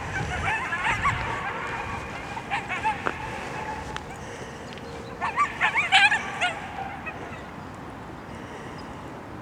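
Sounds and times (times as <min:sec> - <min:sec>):
two coyotes howling with echoes: 0:00.0 - 0:07.5.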